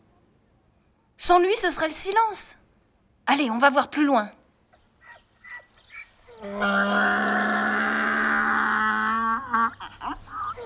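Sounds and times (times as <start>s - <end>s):
speech: 1.3s - 2.6s, 3.3s - 4.4s, 6.4s - 7.5s
donkey braying: 5.0s - 10.6s.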